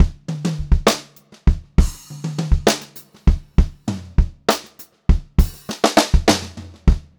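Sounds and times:
pop-rock drum loop: 0:00.0 - 0:07.1.

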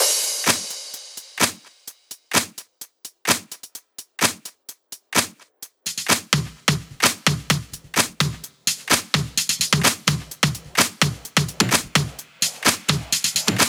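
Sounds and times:
drum loop without bass drum: 0:00.0 - 0:13.6.

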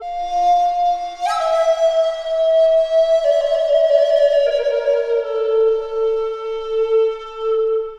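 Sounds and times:
bamboo flute: 0:00.0 - 0:07.9.

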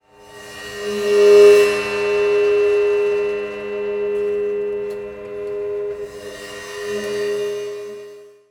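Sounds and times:
prepared drums: 0:00.6 - 0:07.9.

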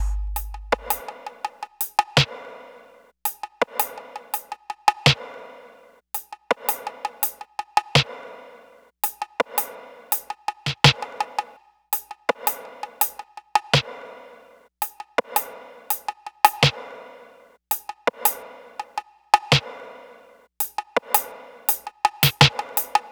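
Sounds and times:
smooth RnB drums in F minor: 0:00.0 - 0:02.6, 0:03.2 - 0:08.4, 0:09.0 - 0:14.1, 0:14.7 - 0:17.0, 0:17.6 - 0:19.9, 0:20.5 - 0:23.1.

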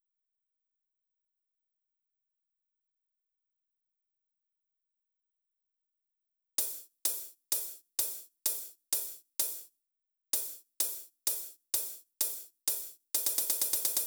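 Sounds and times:
drum loop: 0:06.6 - 0:09.7, 0:10.4 - 0:14.0
ride cymbal: 0:06.6 - 0:09.7, 0:10.4 - 0:14.0.

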